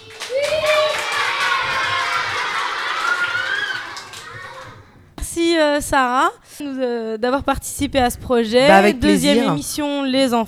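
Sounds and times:
children laughing and shouting: 0.0 - 5.0, 8.7 - 9.6
speech: 5.7 - 10.4.

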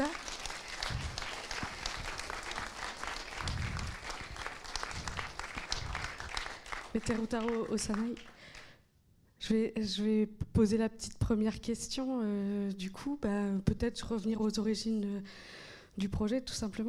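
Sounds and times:
audience applause: 0.0 - 8.7
speech: 7.0 - 8.4, 9.5 - 16.8.

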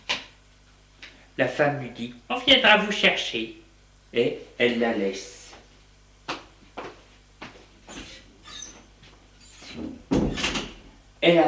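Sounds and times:
speech: 1.4 - 5.4, 11.2 - 11.4
door creaking: 7.9 - 10.9
door thump: 9.8 - 10.8.

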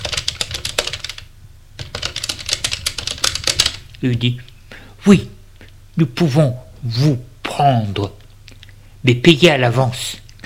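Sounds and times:
hotel clerk typing on a computer keyboard: 0.0 - 3.8
speech: 4.0 - 5.4, 6.0 - 8.2, 9.0 - 10.2.

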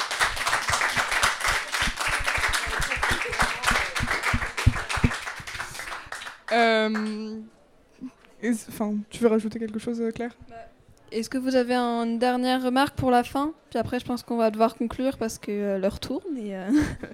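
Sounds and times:
audience applause: 0.0 - 7.1
speech: 6.5 - 7.6, 8.4 - 17.1.

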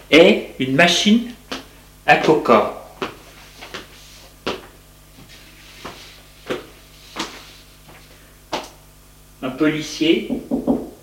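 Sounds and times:
speech: 0.1 - 1.4, 2.1 - 2.8, 9.6 - 10.8
knocking on a door: 10.3 - 11.0.

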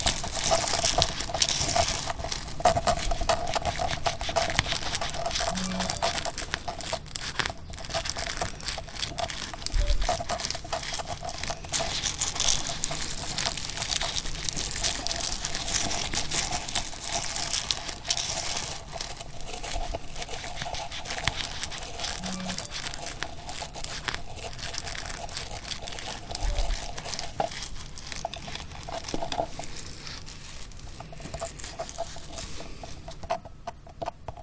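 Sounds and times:
scratching, rubbing and chewing: 0.0 - 34.4.

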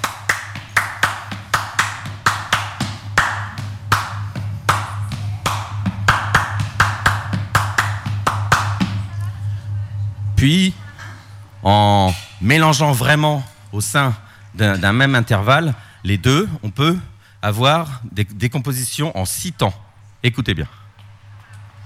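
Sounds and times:
hand claps in ternary rhythm: 0.0 - 9.0
low constant hum: 0.0 - 21.8
speech: 10.4 - 10.8, 11.6 - 20.8.

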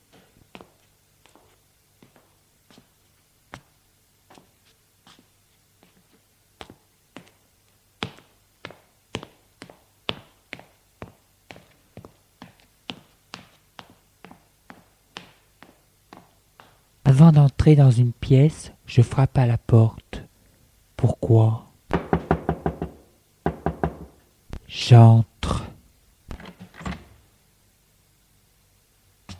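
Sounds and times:
speech: 17.1 - 20.0, 21.0 - 21.6, 24.8 - 25.6
footsteps climbing stairs: 21.9 - 24.2.

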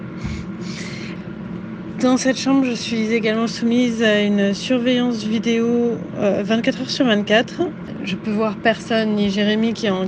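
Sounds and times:
negative-pressure hospital room ventilation hum: 0.0 - 10.0
speech: 2.0 - 10.0.

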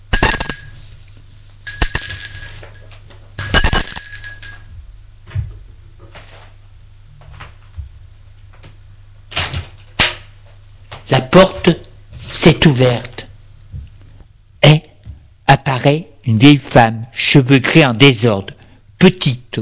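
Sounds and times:
doorbell ringing: 0.0 - 1.0, 1.7 - 4.8
speech: 11.1 - 11.8, 12.4 - 13.2, 15.8 - 19.6.

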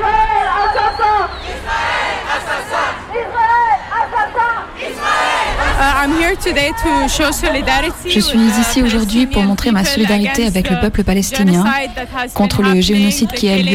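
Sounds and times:
protest crowd shouting: 0.0 - 10.1
speech: 6.4 - 13.7.

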